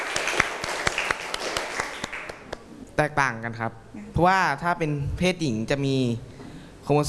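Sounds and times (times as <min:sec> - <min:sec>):
classroom applause: 0:00.0 - 0:02.6
speech: 0:03.0 - 0:06.3, 0:06.9 - 0:07.0.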